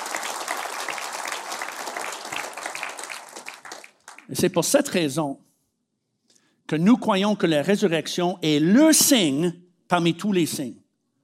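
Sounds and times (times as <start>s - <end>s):
applause: 0.0s - 4.5s
speech: 4.3s - 5.5s, 6.7s - 10.8s.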